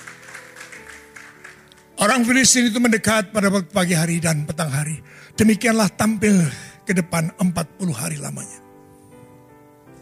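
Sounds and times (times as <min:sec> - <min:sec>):
audience applause: 0:00.0 - 0:02.0
speech: 0:02.0 - 0:08.6.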